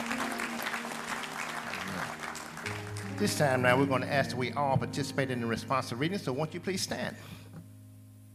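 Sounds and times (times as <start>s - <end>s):
audience applause: 0.0s - 3.8s
speech: 3.2s - 7.4s.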